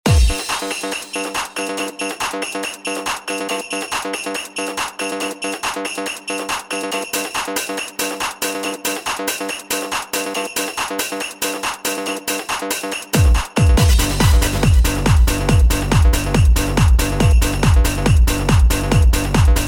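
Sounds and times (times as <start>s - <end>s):
Christmas song DJ remix: 0.0s - 19.6s.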